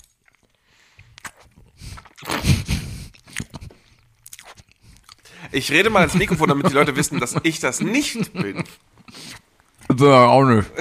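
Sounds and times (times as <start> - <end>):
person chewing a mouthful of cheesecake: 0.0 - 5.3
speech: 5.5 - 8.9, 10.0 - 10.7
laughter: 5.8 - 8.8.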